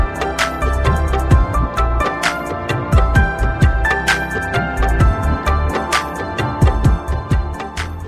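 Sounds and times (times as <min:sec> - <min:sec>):
tabla tone: 0:00.0 - 0:08.0.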